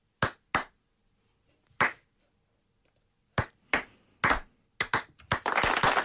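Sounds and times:
slow single handclaps: 0:00.2 - 0:00.8, 0:01.8 - 0:02.0, 0:03.4 - 0:06.0
applause from several people: 0:04.3 - 0:06.0.

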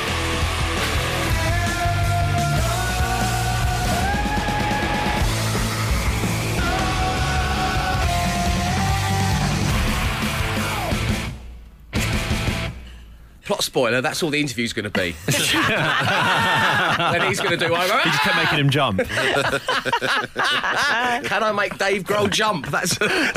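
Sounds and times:
rock singer screaming: 0:00.0 - 0:11.3
loud distorted guitars: 0:00.0 - 0:13.2
drums: 0:00.0 - 0:14.3, 0:14.9 - 0:20.1
speech: 0:13.8 - 0:23.3
laughter: 0:15.0 - 0:23.3.

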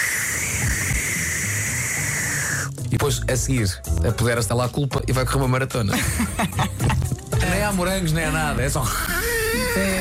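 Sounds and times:
voice imitating a whipped cream can spraying: 0:00.0 - 0:02.8
speech: 0:03.0 - 0:07.0, 0:07.6 - 0:09.1, 0:09.8 - 0:09.9
laughter: 0:05.9 - 0:07.2.

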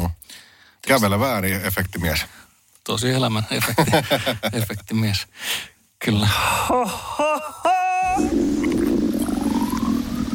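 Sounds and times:
speech: 0:00.8 - 0:08.7
laughter: 0:03.6 - 0:04.8
voice imitating a hungry stomach rumbling: 0:08.0 - 0:10.3.

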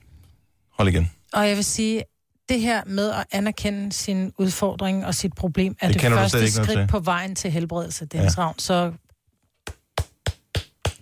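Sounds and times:
speech: 0:00.8 - 0:09.0
hand patting a sweater: 0:09.6 - 0:11.0.

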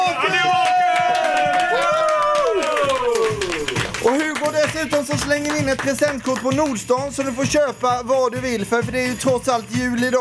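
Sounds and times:
audience clapping along: 0:00.2 - 0:07.2
speech: 0:05.1 - 0:10.2.

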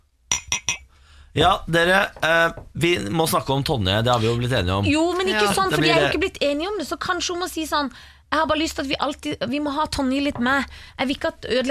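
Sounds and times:
something tapping a glass: 0:00.3 - 0:00.9
speech: 0:01.3 - 0:11.6.

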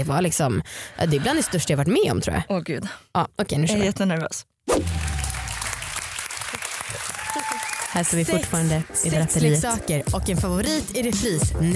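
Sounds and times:
speech: 0:00.0 - 0:05.1, 0:08.0 - 0:11.7
crowd clapping: 0:04.8 - 0:09.8.

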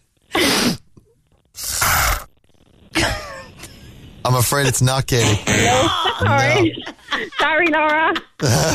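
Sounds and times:
person sniffing: 0:01.6 - 0:02.3
speech: 0:04.2 - 0:08.7
laughter: 0:04.5 - 0:08.7.

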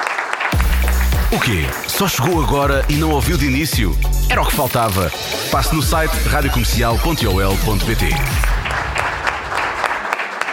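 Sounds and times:
crowd applause: 0:00.0 - 0:02.5, 0:07.0 - 0:10.5
speech: 0:01.3 - 0:08.5.

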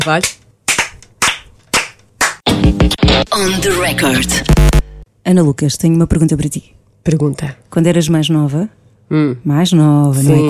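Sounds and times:
speech: 0:00.0 - 0:00.4, 0:02.6 - 0:10.4
hands clapping: 0:00.0 - 0:02.5.

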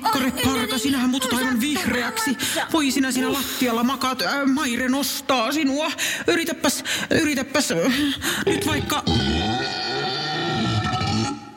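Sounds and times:
speech: 0:00.2 - 0:09.3
drawn-out rumbling burp: 0:08.5 - 0:11.5.

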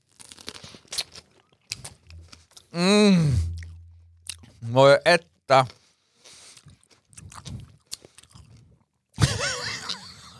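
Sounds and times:
crisp crunchy chewing while tasting food: 0:00.0 - 0:02.7, 0:06.3 - 0:08.9
speech: 0:02.7 - 0:03.4, 0:04.7 - 0:05.8
loud drawn-out voiced groan sliding downward in pitch: 0:02.8 - 0:03.7.

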